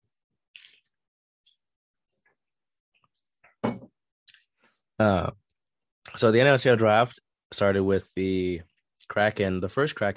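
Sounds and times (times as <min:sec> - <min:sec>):
person drinking water: 0:00.5 - 0:01.0
speech: 0:05.0 - 0:05.4, 0:06.2 - 0:10.1.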